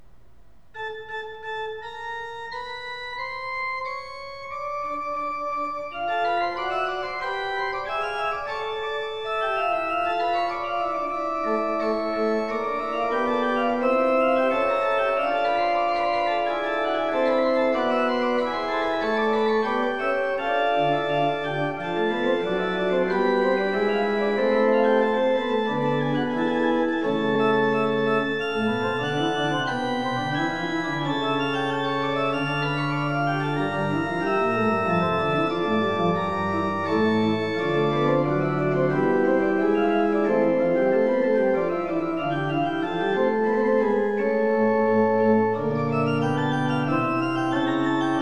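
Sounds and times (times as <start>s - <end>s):
organ fugue: 0.0s - 48.1s.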